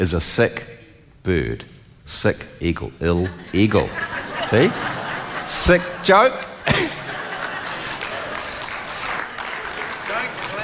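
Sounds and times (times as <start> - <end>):
speech: 0.0 - 6.9
audience clapping: 6.7 - 10.6.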